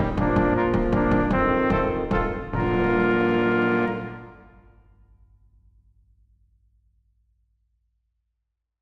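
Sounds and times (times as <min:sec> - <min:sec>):
brass quintet playing a minuet: 0:00.0 - 0:04.7.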